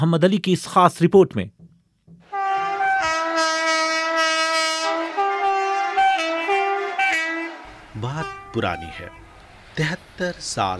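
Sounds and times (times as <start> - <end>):
speech: 0.0 - 1.6, 8.0 - 9.2, 9.8 - 10.7
train arriving at Chaumuhani railway station: 2.2 - 10.7.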